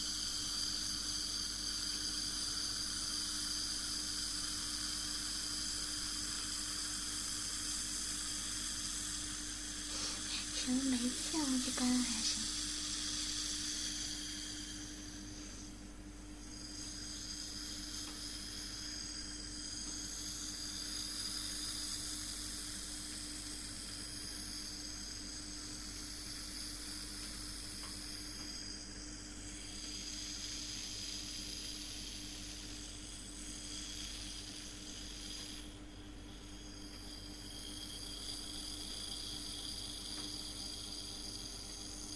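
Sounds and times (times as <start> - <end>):
air conditioner running loudly: 0.0 - 42.1
speech: 10.7 - 12.6.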